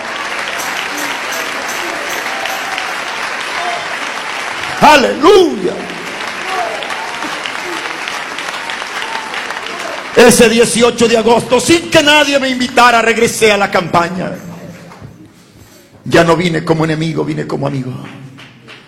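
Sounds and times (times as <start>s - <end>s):
audience applause: 0.0s - 11.6s
speech: 4.9s - 5.9s, 10.2s - 14.5s, 16.1s - 18.2s.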